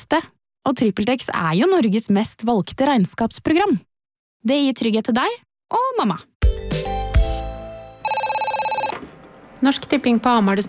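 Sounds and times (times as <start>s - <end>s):
speech: 0.0s - 6.8s, 9.6s - 10.6s
telephone electronic ringtone: 8.0s - 9.0s.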